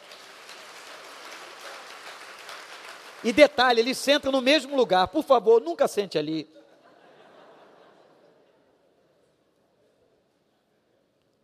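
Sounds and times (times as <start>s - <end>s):
crowd clapping: 0.0s - 5.2s
speech: 3.2s - 6.6s
laughter: 6.5s - 8.7s.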